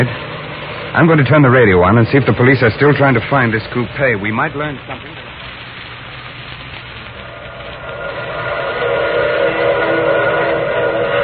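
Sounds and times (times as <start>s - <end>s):
speech: 0.0s - 0.2s, 1.0s - 5.2s
steam train whistle: 7.8s - 11.2s.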